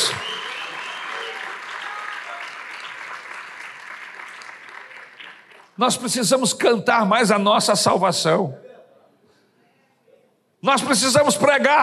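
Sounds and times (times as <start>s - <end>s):
audience applauding: 0.0s - 5.8s
speech: 5.8s - 8.6s, 10.6s - 11.8s.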